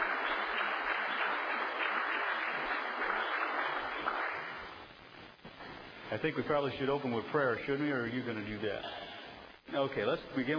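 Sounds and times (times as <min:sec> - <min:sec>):
audience applause: 0:00.0 - 0:04.9
speech: 0:06.1 - 0:09.1, 0:09.7 - 0:10.5.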